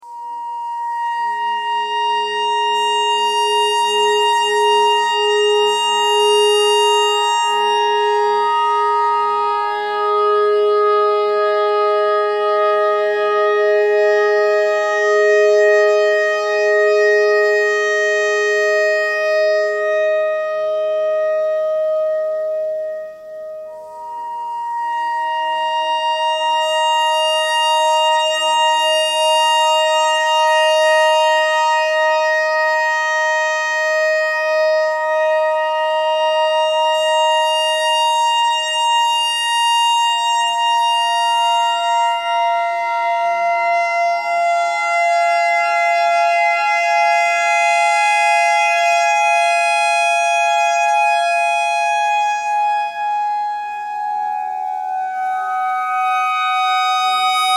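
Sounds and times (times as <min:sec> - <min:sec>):
clarinet notes in E pentatonic: 0:00.0 - 0:57.5.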